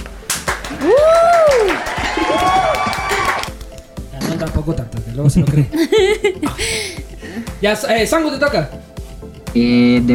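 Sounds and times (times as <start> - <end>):
audience applause: 0.3 - 3.6
speech: 0.8 - 1.1, 4.6 - 7.0, 7.6 - 8.8, 9.5 - 10.1
laughter: 5.7 - 7.0.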